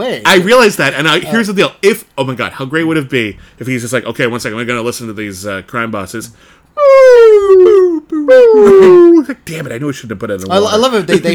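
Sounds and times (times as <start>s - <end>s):
speech: 0.1s - 11.3s
human voice imitating a whale call: 6.8s - 9.2s.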